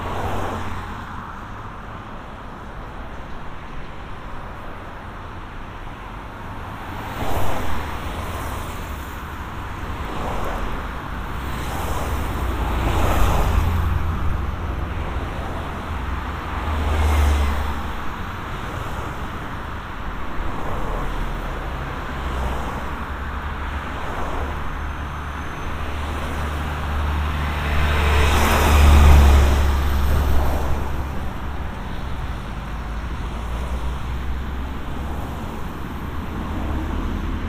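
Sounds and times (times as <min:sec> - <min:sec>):
traffic ambience recorded binaurally: 0:00.0 - 0:37.4.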